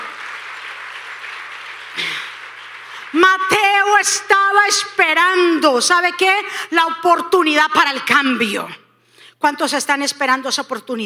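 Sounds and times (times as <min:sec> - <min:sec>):
audience applause: 0:00.0 - 0:03.2
speech: 0:03.2 - 0:08.8, 0:09.4 - 0:11.0.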